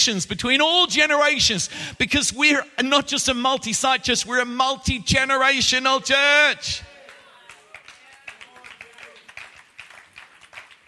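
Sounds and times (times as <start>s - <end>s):
speech: 0.0s - 6.9s
people clapping in a steady rhythm: 6.8s - 10.8s.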